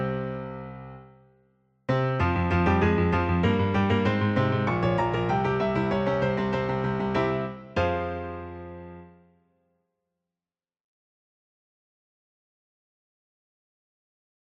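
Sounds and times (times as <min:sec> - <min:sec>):
piano song: 0:00.0 - 0:09.3.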